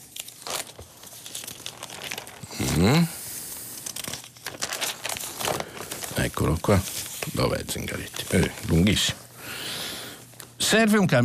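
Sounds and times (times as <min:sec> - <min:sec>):
newspaper pages being turned: 0:00.0 - 0:09.4
person murmuring: 0:02.4 - 0:03.3
speech: 0:02.8 - 0:03.2, 0:06.4 - 0:09.2, 0:10.7 - 0:11.2.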